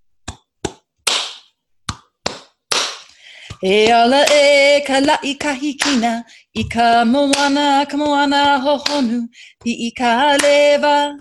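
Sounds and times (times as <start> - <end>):
ceremonial hand claps accompanying a chant: 0.3 - 4.5, 5.8 - 6.1, 7.3 - 8.1, 8.8 - 9.2, 10.3 - 10.9
speech: 3.6 - 11.1.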